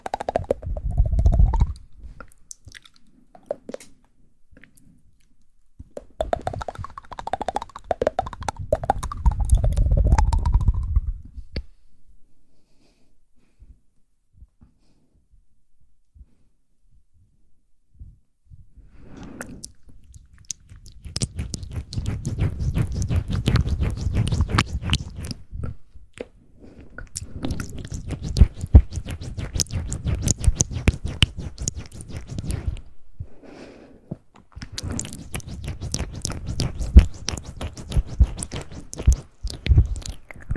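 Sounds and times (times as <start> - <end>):
intense layered wet mouth sounds: 0.0 - 4.0, 6.0 - 11.3, 19.2 - 26.4, 27.0 - 32.9, 34.4 - 40.5.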